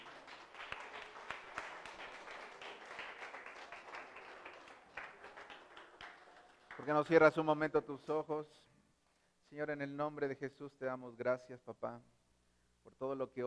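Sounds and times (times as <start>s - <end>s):
audience clapping hands: 0.0s - 7.4s
speech: 6.8s - 8.7s, 9.5s - 12.2s, 12.8s - 13.4s.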